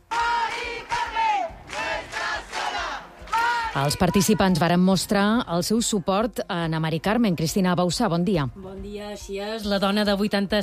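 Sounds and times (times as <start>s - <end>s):
protest crowd chanting in unison: 0.0s - 4.6s
speech: 3.8s - 10.6s.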